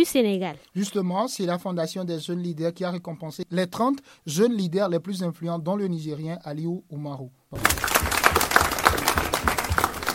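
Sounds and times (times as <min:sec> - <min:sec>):
speech: 0:00.0 - 0:08.0
crowd applause at an outdoor award ceremony in ministry gardens: 0:07.6 - 0:10.1.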